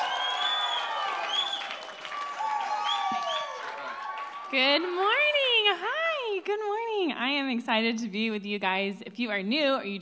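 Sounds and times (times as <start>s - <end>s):
shrill whistles and whoops: 0.0s - 4.5s
crowd applauding and cheering: 0.0s - 5.6s
speech: 4.5s - 9.9s.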